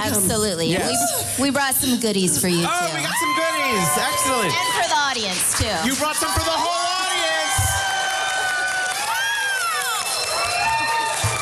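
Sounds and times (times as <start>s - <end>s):
speech: 0.0s - 7.3s
audience applause: 3.1s - 11.4s.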